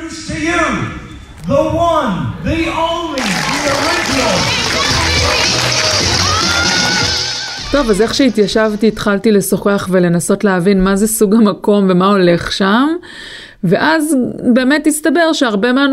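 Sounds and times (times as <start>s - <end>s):
speech: 0.4s - 5.8s, 7.7s - 15.9s
audience clapping for a candidate's entrance: 3.0s - 8.0s.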